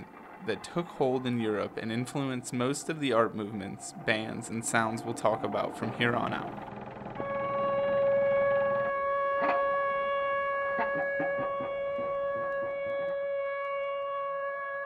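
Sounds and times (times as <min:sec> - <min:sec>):
factory sirens: 0:00.0 - 0:14.8
speech: 0:00.4 - 0:06.8
found-sound composition with scrap metal percussion: 0:10.5 - 0:13.0.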